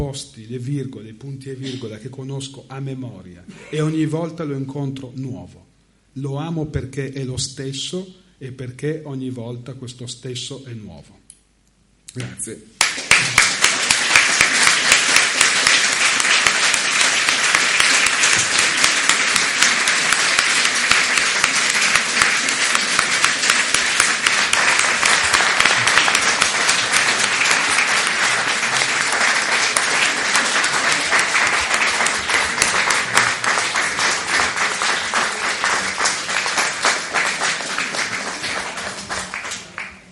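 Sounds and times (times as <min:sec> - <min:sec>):
speech: 0:00.0 - 0:11.2, 0:12.1 - 0:13.5
long applause from a large audience: 0:12.8 - 0:40.0.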